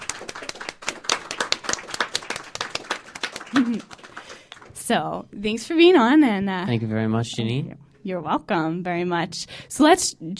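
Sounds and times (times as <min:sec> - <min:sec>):
audience applause: 0:00.0 - 0:04.8
person whooping: 0:03.5 - 0:03.9
speech: 0:03.6 - 0:03.9, 0:04.9 - 0:10.3.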